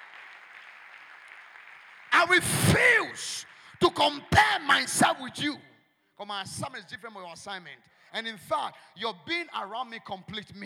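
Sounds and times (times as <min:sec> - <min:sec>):
audience clapping: 0:00.0 - 0:04.8
speech: 0:02.3 - 0:10.6.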